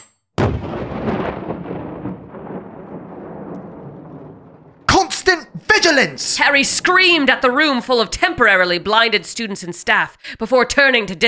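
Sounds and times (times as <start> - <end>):
small object exploding with a bang: 0.4 - 5.0
speech: 5.8 - 11.2.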